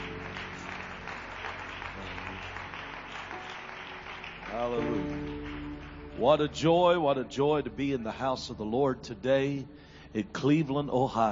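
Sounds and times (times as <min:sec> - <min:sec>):
audience clapping in praise: 0:00.0 - 0:07.1
speech: 0:04.6 - 0:05.2, 0:06.2 - 0:11.3.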